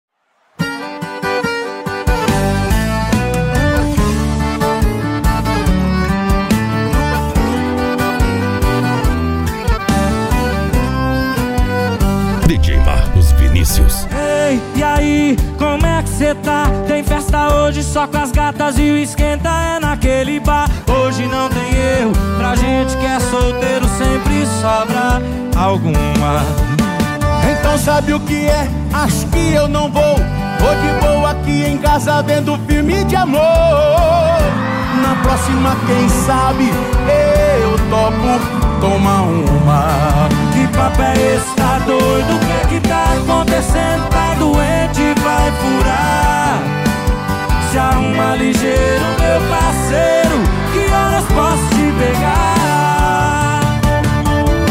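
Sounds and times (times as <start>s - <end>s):
sertanejo sofrência romantic music: 0.6s - 54.6s.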